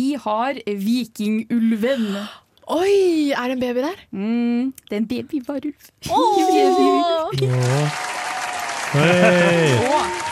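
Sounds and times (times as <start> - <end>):
speech: 0.0 - 8.2, 8.9 - 10.3
people clapping: 7.3 - 10.3
laughter: 8.9 - 10.3.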